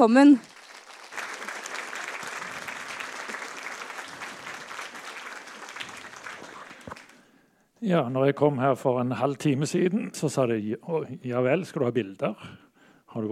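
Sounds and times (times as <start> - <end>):
speech: 0.0 - 0.5, 7.9 - 12.6
applause: 0.2 - 7.3.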